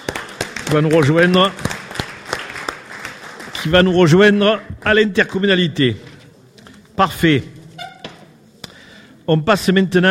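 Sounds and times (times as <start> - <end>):
crowd clapping: 0.0 - 5.5
speech: 0.7 - 1.7, 3.6 - 6.1, 7.0 - 7.6, 9.3 - 10.1.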